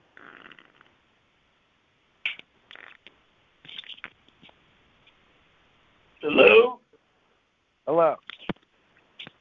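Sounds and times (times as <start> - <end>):
fart: 0.2 - 1.0, 2.3 - 3.1.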